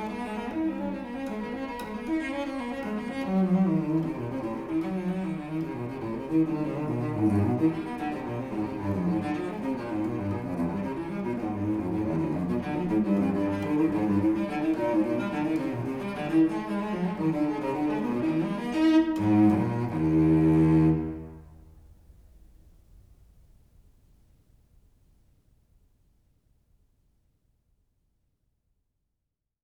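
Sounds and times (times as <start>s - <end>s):
Baroque solo cello suite: 0.0s - 22.0s.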